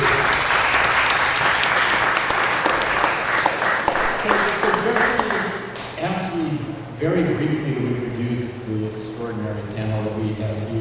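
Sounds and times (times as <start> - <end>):
audience applause: 0.0 - 5.6
speech: 7.0 - 10.7.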